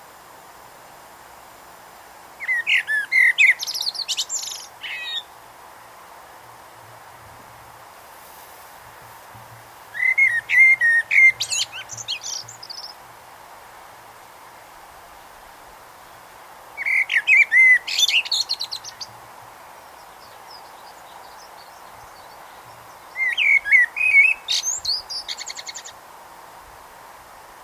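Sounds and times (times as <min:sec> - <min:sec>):
Eurasian blackbird singing: 0:02.4 - 0:05.3, 0:10.0 - 0:13.0, 0:16.8 - 0:19.1, 0:20.0 - 0:25.9.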